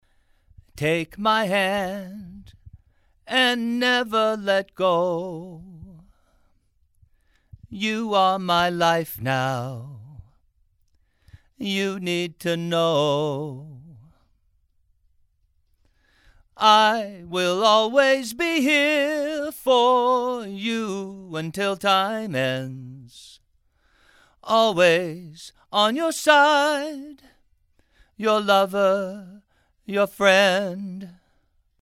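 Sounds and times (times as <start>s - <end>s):
male vocals: 0.5s - 6.4s, 7.6s - 10.4s, 11.4s - 14.3s, 16.5s - 23.4s, 24.4s - 27.4s, 28.1s - 31.3s.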